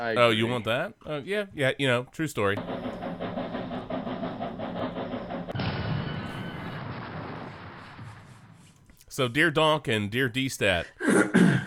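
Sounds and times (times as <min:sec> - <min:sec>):
speech: 0:00.0 - 0:02.8, 0:09.2 - 0:11.6
train sound effect: 0:02.6 - 0:09.0.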